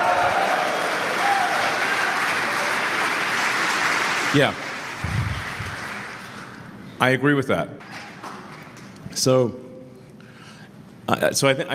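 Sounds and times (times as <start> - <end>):
audience cheering and applause: 0.0 - 6.7
speech: 4.3 - 5.2, 7.0 - 7.9, 9.2 - 9.6, 11.1 - 11.7.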